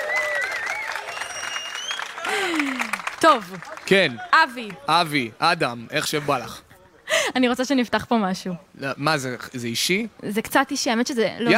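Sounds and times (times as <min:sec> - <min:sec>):
high whistles: 0:00.0 - 0:02.3
cheering voices: 0:00.0 - 0:05.0
audience applause: 0:00.0 - 0:05.3
speech: 0:02.3 - 0:06.6, 0:07.3 - 0:11.5.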